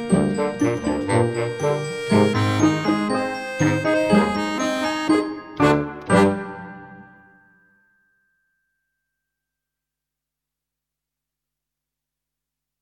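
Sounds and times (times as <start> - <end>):
fun brass music: 0.0 - 7.2.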